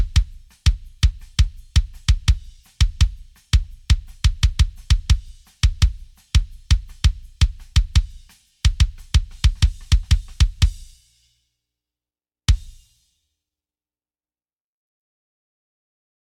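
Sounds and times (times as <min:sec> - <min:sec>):
kick drum: 0:00.0 - 0:11.0, 0:12.5 - 0:12.9.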